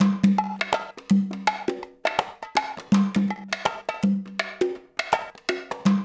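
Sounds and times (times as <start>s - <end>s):
percussion loop: 0.0s - 6.0s.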